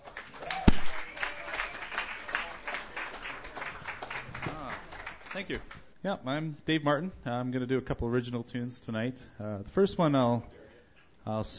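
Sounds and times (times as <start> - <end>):
audience applauding at a Sunday night open mic: 0.0 - 5.8
speech: 5.4 - 10.6, 11.2 - 11.5.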